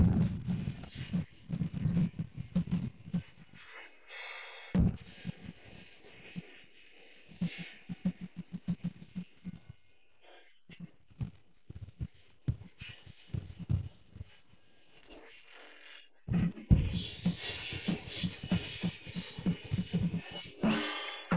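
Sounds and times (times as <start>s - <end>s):
drums: 0.0s - 3.6s, 4.8s - 9.8s, 10.7s - 14.6s, 16.6s - 21.2s.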